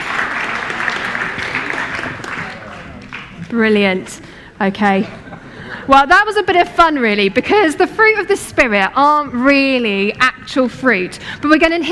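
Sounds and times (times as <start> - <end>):
audience applause: 0.0 - 3.5
speech: 3.5 - 5.2, 5.9 - 11.9.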